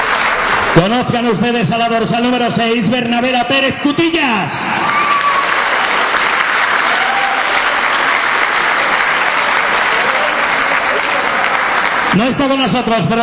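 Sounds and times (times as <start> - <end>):
audience ovation applause: 0.0 - 1.0, 4.8 - 13.2
speech: 0.8 - 5.1, 12.2 - 13.2.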